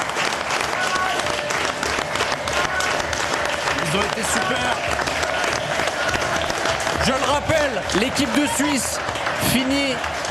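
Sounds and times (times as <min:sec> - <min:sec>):
applause: 0:00.0 - 0:10.2
speech: 0:03.9 - 0:05.0, 0:07.0 - 0:10.2.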